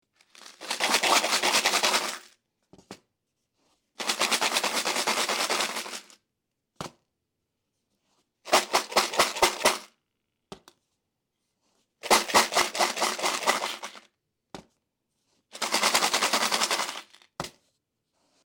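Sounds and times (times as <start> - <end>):
shaking piggy bank: 0.1 - 2.4, 4.0 - 6.2, 8.5 - 9.9, 12.0 - 14.1, 15.5 - 17.4.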